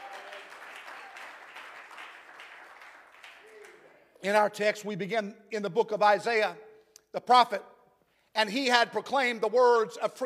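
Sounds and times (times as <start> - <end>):
crowd clapping hands: 0.0 - 4.2
speech: 4.2 - 7.7, 8.4 - 10.2.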